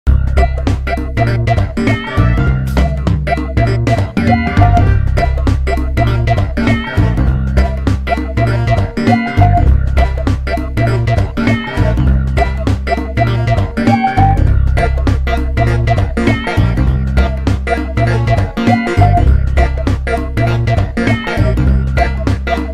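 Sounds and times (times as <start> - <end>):
forest theme music: 0.1 - 22.7.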